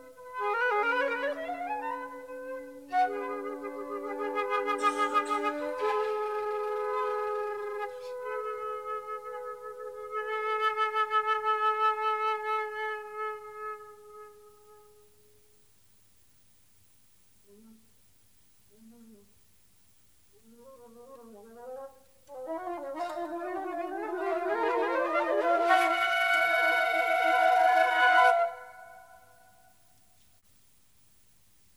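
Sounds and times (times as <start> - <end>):
suite for three flute instruments: 0.0 - 15.0, 22.3 - 29.5.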